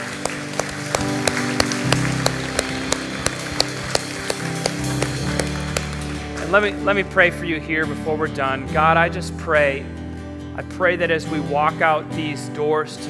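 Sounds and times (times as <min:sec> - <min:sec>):
audience applauding: 0:00.0 - 0:06.2
speech: 0:06.5 - 0:10.0, 0:10.6 - 0:13.0.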